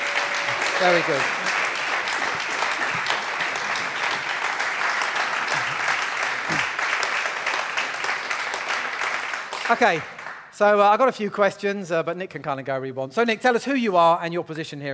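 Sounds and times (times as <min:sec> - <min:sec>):
audience applause: 0:00.0 - 0:10.5
speech: 0:00.5 - 0:01.6, 0:09.7 - 0:14.9.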